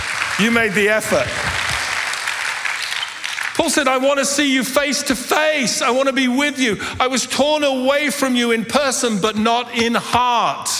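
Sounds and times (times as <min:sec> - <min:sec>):
audience applause: 0:00.0 - 0:03.8
speech: 0:00.4 - 0:01.5, 0:03.6 - 0:10.7.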